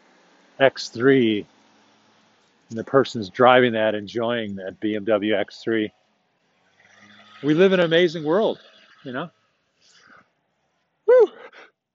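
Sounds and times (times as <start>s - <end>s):
speech: 0.6s - 1.6s, 2.7s - 6.0s, 7.4s - 9.4s
person sneezing: 11.1s - 11.7s.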